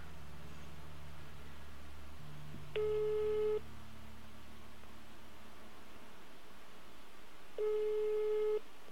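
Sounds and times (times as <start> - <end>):
low hum: 0.0 - 8.9
phone ringback tone: 2.8 - 3.6, 7.6 - 8.6.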